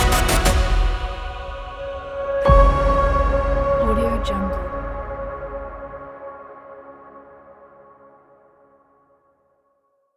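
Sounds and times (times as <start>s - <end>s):
cinematic trailer music: 0.0s - 7.9s.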